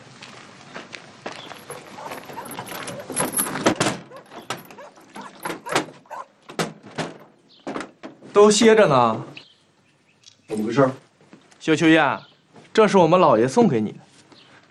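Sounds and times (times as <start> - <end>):
shuffling thumps: 1.4 - 8.6
door opening: 1.5 - 8.4
speech: 8.4 - 9.3, 10.6 - 11.0, 11.6 - 14.0.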